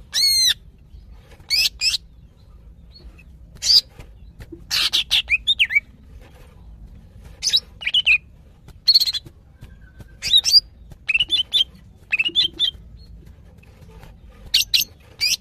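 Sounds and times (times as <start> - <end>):
female greater green leafbird calling: 0.0 - 5.9, 8.8 - 13.1, 14.5 - 15.3.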